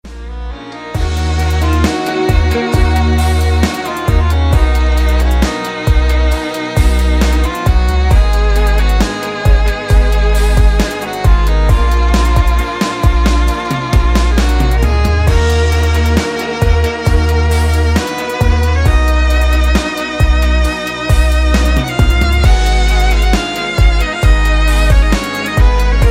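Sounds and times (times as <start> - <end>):
instrumental music: 0.0 - 26.0.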